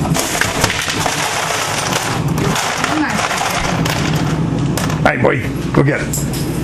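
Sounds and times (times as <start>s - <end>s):
ice tray rattling in freezer: 0.2s - 4.4s
speech: 5.2s - 6.5s.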